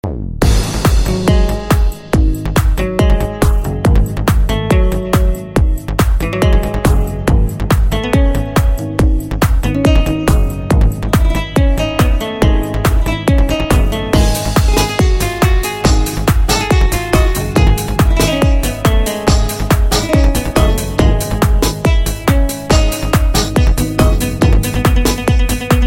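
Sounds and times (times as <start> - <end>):
Arab tribal music mix: 0.4 - 25.8.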